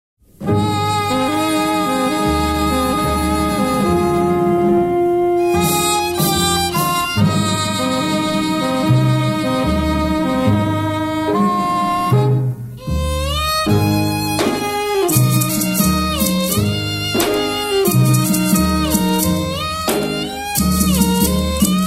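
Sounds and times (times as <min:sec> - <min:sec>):
off-beat music: 0:00.6 - 0:12.4, 0:13.0 - 0:21.8.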